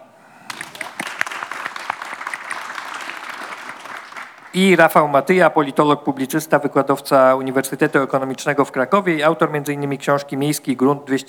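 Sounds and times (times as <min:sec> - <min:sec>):
audience applause: 0:00.3 - 0:04.8
speech: 0:04.6 - 0:11.2.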